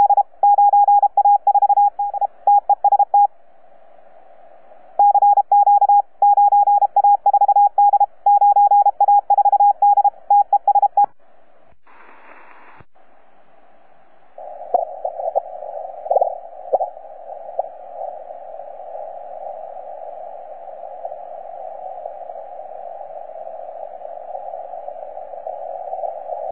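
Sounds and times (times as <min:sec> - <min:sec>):
CW Morse code beeps: 0:00.0 - 0:03.3, 0:05.0 - 0:11.1.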